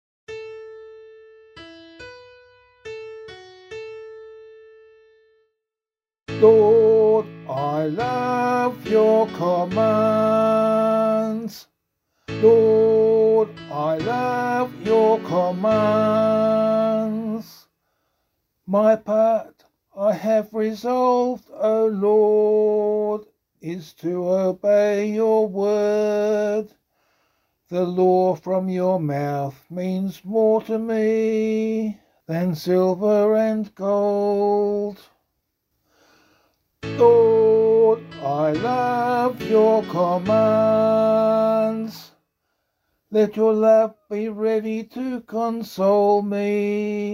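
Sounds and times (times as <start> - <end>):
psalm singing: 6.3 - 17.7, 18.7 - 26.7, 27.7 - 35.1, 36.8 - 42.2, 43.1 - 47.1.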